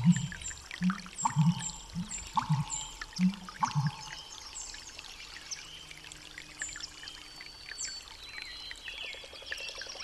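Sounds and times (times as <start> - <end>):
frogs croaking in low rounded pulses: 0.0 - 4.5.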